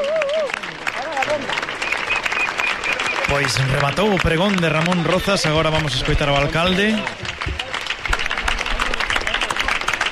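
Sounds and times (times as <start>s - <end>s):
audience applause: 0.0s - 10.1s
crowd murmuring: 0.0s - 10.1s
speech: 3.3s - 7.3s.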